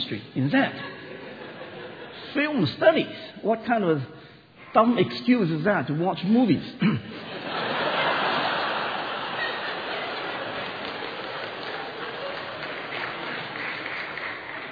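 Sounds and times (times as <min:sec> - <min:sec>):
speech: 0:00.1 - 0:00.9, 0:02.3 - 0:07.3
laughter: 0:00.7 - 0:02.3, 0:07.1 - 0:14.2
audience clapping: 0:07.6 - 0:14.6.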